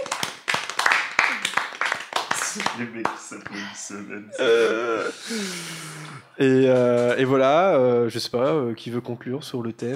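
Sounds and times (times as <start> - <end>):
small group applauding: 0.0 - 3.5
speech: 2.6 - 9.9.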